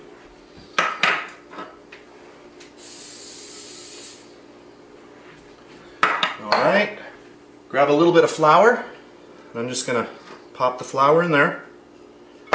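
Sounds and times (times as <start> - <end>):
non-stick spray spraying on baking tins: 2.8 - 4.4
speech: 6.4 - 7.0, 7.7 - 8.9, 9.5 - 11.7.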